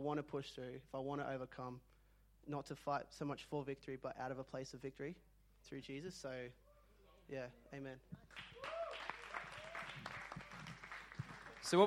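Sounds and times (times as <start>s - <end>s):
speech: 0.0s - 6.6s, 7.3s - 8.8s, 11.6s - 11.8s
audience clapping: 8.2s - 11.8s.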